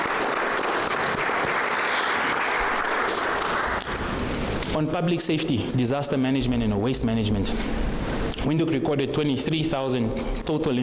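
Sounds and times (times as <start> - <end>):
audience applause: 0.0 - 4.2
speech: 4.8 - 10.8.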